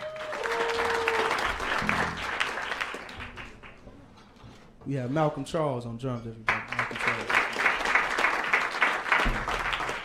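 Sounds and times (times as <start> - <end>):
audience applause welcoming a jazz trio at Lincoln Center: 0.0 - 3.8, 6.5 - 10.0
speech: 4.9 - 7.3.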